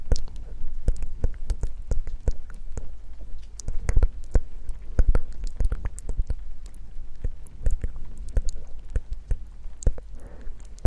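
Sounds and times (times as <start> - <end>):
ASMR wet mouth clicks and pops: 0.0 - 10.8
soft breathy hiss: 10.1 - 10.8.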